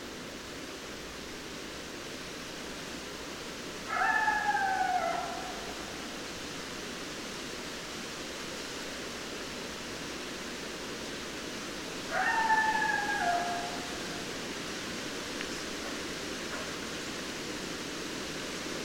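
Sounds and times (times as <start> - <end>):
steady hiss: 0.0 - 18.8
coyote howling: 3.8 - 6.2, 12.1 - 14.4.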